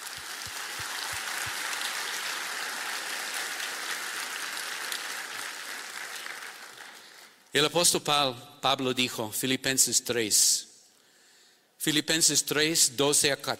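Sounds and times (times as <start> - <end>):
audience applauding: 0.0 - 7.5
speech: 7.6 - 10.7, 11.8 - 13.5.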